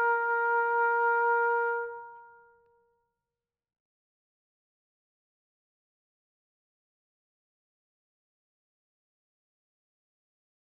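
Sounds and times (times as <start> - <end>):
bugle call: 0.0 - 2.3.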